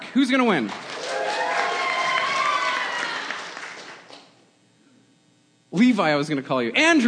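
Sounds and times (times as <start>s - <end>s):
speech: 0.1s - 0.9s, 5.7s - 7.0s
crowd clapping and cheering: 0.5s - 4.4s.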